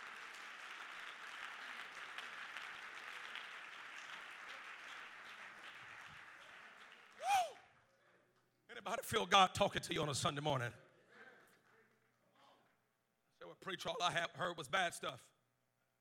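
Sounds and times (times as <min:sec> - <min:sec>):
audience clapping hands: 0:00.0 - 0:07.7
speech: 0:08.9 - 0:10.8, 0:13.7 - 0:15.3.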